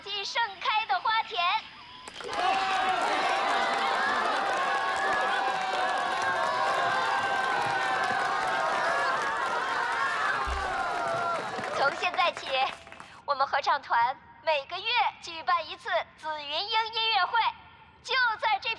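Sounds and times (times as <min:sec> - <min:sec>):
speech: 0:00.2 - 0:00.7, 0:13.4 - 0:18.7
audience applause and cheering: 0:02.0 - 0:13.1.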